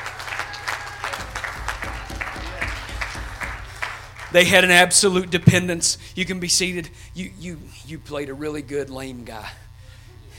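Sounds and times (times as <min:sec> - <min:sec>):
audience clapping hands: 0:00.0 - 0:05.0
speech: 0:04.3 - 0:09.6.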